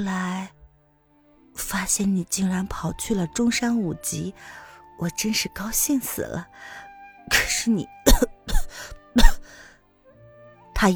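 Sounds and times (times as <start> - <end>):
speech: 0.0 - 0.6, 1.7 - 9.4, 10.8 - 10.9
coughing under a blanket: 7.3 - 9.6.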